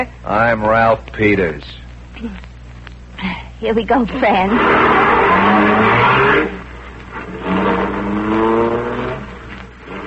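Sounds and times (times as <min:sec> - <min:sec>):
speech: 0:00.0 - 0:02.5, 0:03.2 - 0:06.6
car engine revving and choking: 0:04.5 - 0:10.0.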